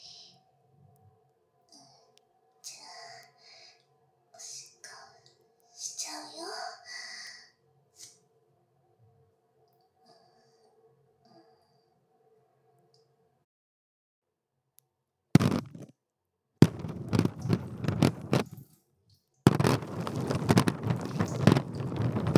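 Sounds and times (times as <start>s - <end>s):
urination sounds recorded on a dummy head microphone for ASMR: 15.4s - 15.9s, 16.6s - 18.6s, 19.5s - 22.3s.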